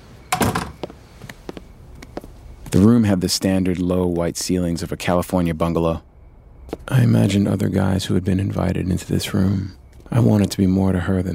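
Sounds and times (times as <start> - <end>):
door handle and latch rattling as a door opens: 0.3 - 0.8
speech: 2.7 - 6.1, 6.7 - 11.3.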